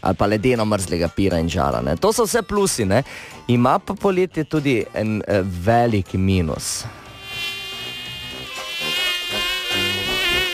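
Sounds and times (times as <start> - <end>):
speech: 0.0 - 7.5
mosquito whining: 6.9 - 10.5.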